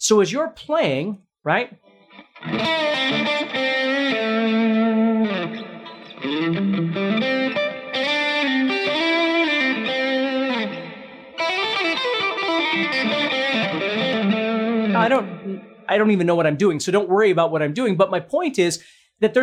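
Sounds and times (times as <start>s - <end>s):
speech: 0.0s - 4.8s, 15.0s - 19.4s
distorted electric guitar solo with hammer-ons and slides: 2.0s - 15.9s.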